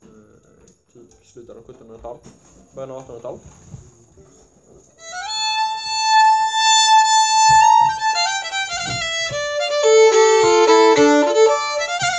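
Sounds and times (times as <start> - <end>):
Småland polonaise folk tune: 5.0 - 12.1.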